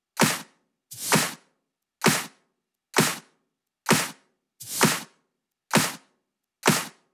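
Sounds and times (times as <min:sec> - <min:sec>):
drums: 0:00.2 - 0:01.4, 0:02.0 - 0:02.3, 0:03.0 - 0:03.2, 0:03.9 - 0:05.1, 0:05.7 - 0:06.0, 0:06.6 - 0:06.9.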